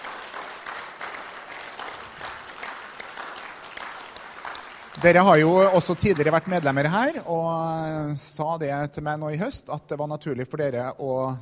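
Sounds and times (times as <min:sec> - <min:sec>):
audience applauding: 0:00.0 - 0:07.3
speech: 0:05.0 - 0:11.3.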